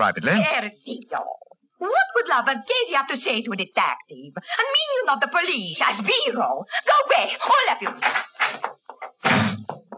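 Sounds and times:
speech: 0.0s - 8.7s
door slamming shut: 9.2s - 9.8s.

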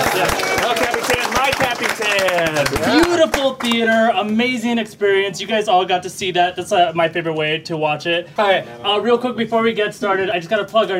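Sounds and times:
murmur of cheering voices: 0.0s - 3.4s
theater audience applauding: 0.0s - 4.1s
speech: 2.6s - 10.9s.

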